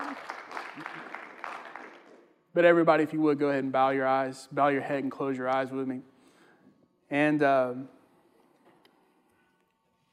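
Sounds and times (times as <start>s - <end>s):
small group of people clapping: 0.0s - 2.4s
speech: 2.6s - 6.1s, 7.1s - 8.0s.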